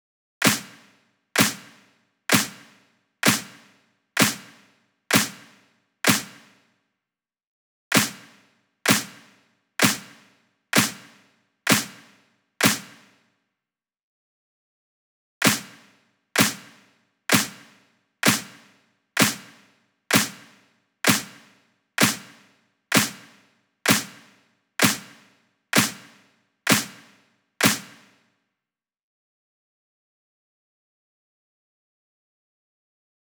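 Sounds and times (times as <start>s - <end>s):
clap at 128 BPM: 0.4s - 6.6s, 7.9s - 8.3s, 8.9s - 13.1s, 15.4s - 15.8s, 16.4s - 28.2s.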